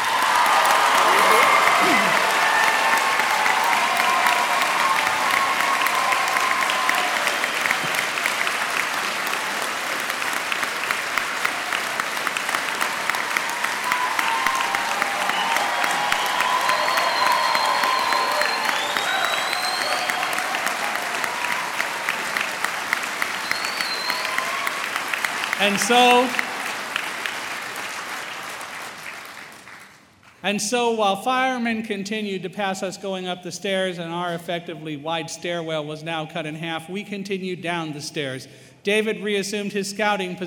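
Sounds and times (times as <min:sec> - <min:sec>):
audience applause: 0:00.0 - 0:30.0
speech: 0:25.7 - 0:26.4, 0:30.4 - 0:40.4.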